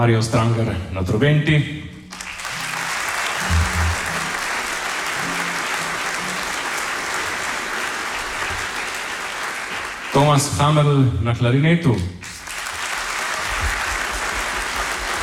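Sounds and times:
speech: 0.0s - 1.8s, 10.2s - 12.2s
large audience applauding at a concert: 2.1s - 10.6s, 12.2s - 15.2s.

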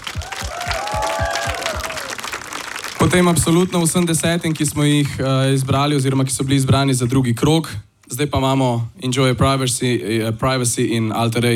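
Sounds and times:
audience clapping at a band competition final: 0.0s - 6.0s
speech: 3.0s - 11.5s.

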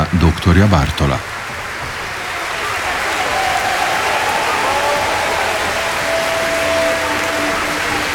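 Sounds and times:
loud audience applause: 0.0s - 8.1s
speech: 0.1s - 1.4s.

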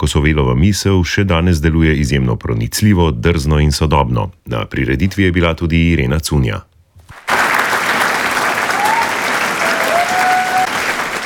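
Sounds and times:
speech: 0.0s - 6.7s
standing audience applause in a packed hall at the Kosovel cultural centre: 7.1s - 11.2s.

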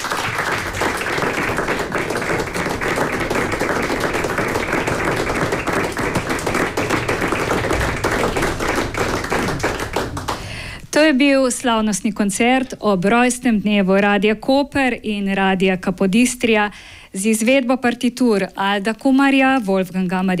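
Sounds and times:
audience applause after orchestra concert: 0.0s - 10.6s
speech: 11.1s - 20.3s.

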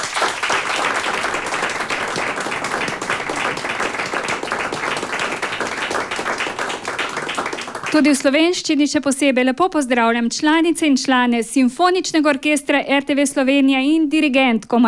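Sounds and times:
audience applause for orchestra musicians: 0.0s - 8.2s
speech: 7.9s - 14.8s.

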